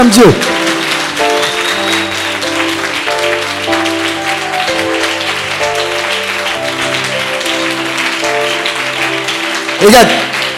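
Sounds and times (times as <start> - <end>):
speech: 0.0 - 0.6, 9.8 - 10.3
congregation clapping and cheering at a worship gathering: 0.0 - 10.5
sustained musical chords: 0.4 - 10.5.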